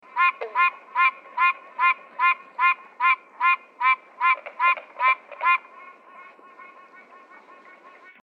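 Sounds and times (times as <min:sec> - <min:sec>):
tree frog calling ringtone: 0:00.1 - 0:08.2.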